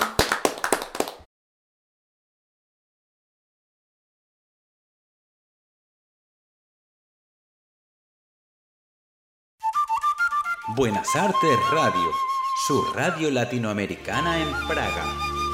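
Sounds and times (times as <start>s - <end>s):
applause: 0.0s - 1.3s
speech: 10.7s - 15.4s.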